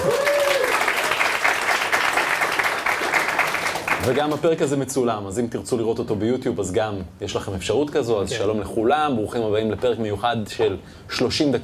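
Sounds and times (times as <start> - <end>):
audience applause: 0.0 - 4.4
speech: 4.0 - 11.6.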